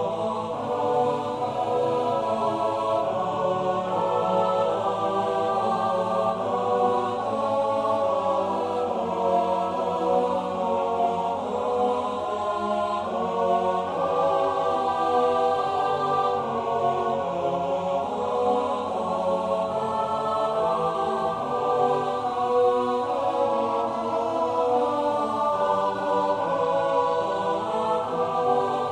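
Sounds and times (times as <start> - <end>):
SATB choir singing: 0.0 - 28.8.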